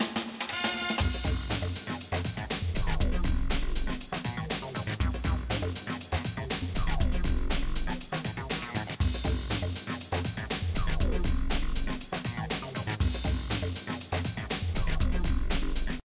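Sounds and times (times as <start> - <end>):
unused music track: 0.0 - 16.0.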